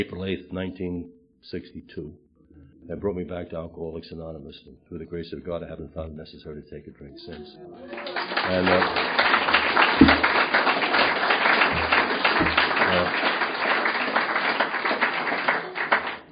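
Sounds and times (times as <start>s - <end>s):
speech: 0.0s - 2.2s, 2.8s - 10.2s
audience applause: 7.8s - 16.3s.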